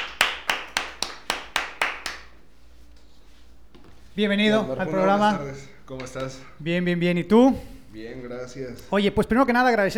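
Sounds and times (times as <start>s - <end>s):
sharp hand claps: 0.0s - 2.5s
speech: 4.2s - 9.9s.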